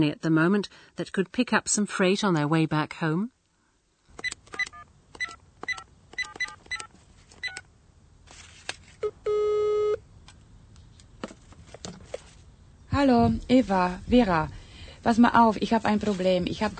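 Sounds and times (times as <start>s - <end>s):
speech: 0.0s - 3.4s, 13.0s - 16.7s
telephone dialing beeps: 4.2s - 7.6s
rustling: 6.4s - 7.5s, 8.2s - 9.0s, 10.3s - 16.7s
telephone ringing tone: 9.0s - 10.0s.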